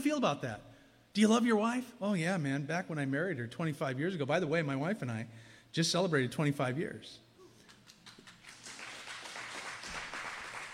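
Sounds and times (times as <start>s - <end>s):
speech: 0.0s - 7.2s
audience clapping: 7.6s - 10.7s.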